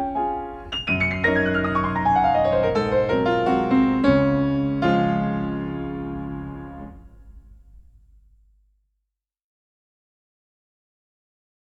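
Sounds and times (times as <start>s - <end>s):
waltz music: 0.0s - 7.2s.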